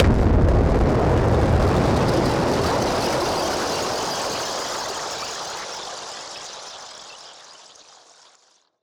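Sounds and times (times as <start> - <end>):
noise bomb: 0.0 - 4.0.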